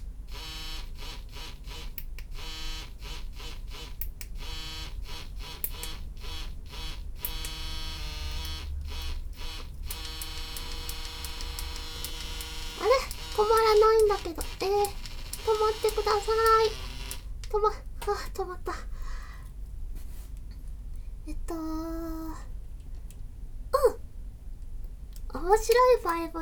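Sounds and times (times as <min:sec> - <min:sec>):
vibrator buzzing in vibration patterns: 0:00.0 - 0:17.7
person speaking: 0:12.1 - 0:19.0, 0:21.3 - 0:22.5, 0:23.8 - 0:24.0, 0:25.3 - 0:26.4.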